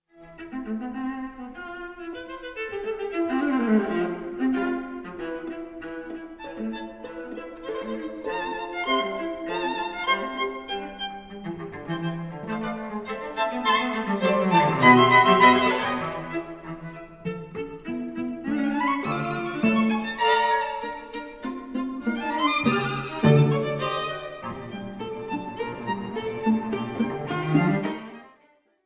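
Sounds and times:
string quartet in E minor: 0.1 - 28.6.

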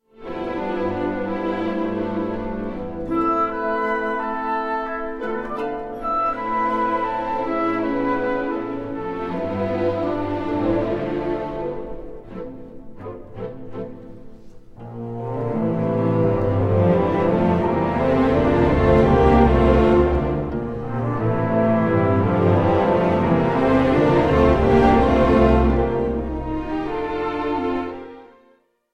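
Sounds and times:
orchestra playing an arranged suite prelude: 0.1 - 28.4.

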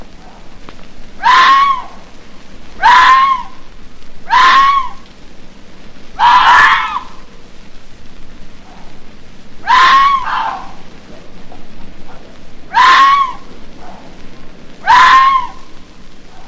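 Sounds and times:
red fox screaming: 1.2 - 2.1, 2.8 - 5.0, 6.2 - 7.3, 9.6 - 10.9, 12.1 - 14.1, 14.8 - 16.4.

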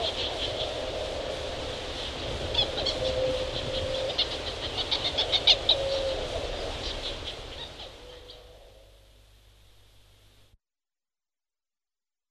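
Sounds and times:
Galapagos petrel moaning calls: 0.0 - 9.1.

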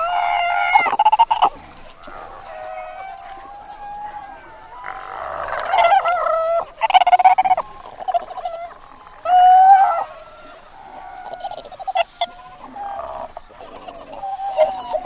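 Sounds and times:
Antarctic fur seal bleating calls: 0.0 - 15.0.

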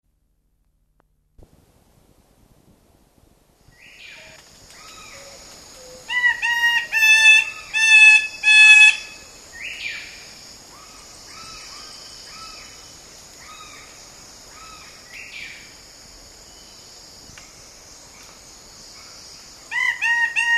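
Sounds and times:
king bird-of-paradise whistled calls: 5.8 - 9.8.

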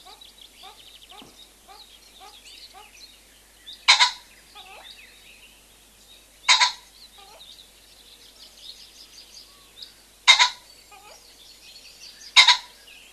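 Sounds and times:
common pheasant crowing: 0.0 - 3.0, 3.8 - 4.9, 6.5 - 7.5, 10.2 - 11.3, 12.3 - 12.8.

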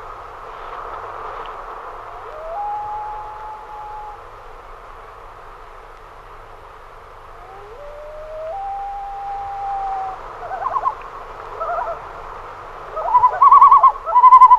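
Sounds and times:
common loon calling with whistles and tremolo: 2.1 - 4.2, 7.3 - 12.1, 12.9 - 14.5.

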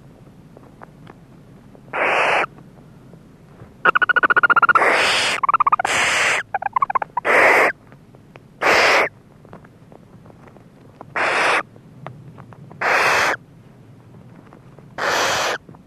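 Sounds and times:
barn owl screeching: 1.9 - 2.5, 3.8 - 7.8, 8.6 - 9.1, 11.2 - 11.6, 12.8 - 13.4, 15.0 - 15.6.

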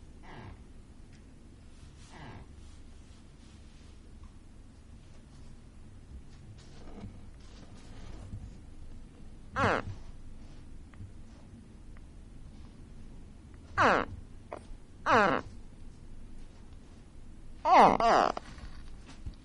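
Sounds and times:
gharial calls: 9.6 - 9.9, 13.8 - 14.1, 15.1 - 15.5, 17.7 - 18.4.

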